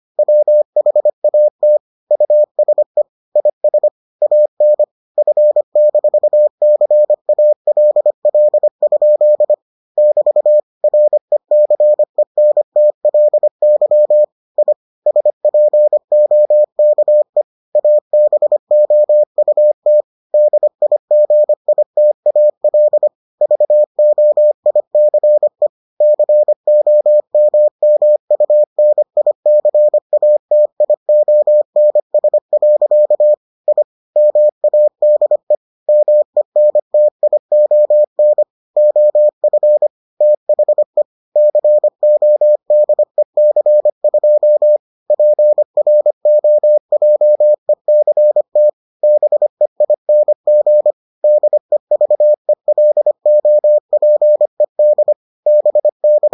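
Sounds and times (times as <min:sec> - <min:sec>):
morse code beeps: 0:00.2 - 0:56.3.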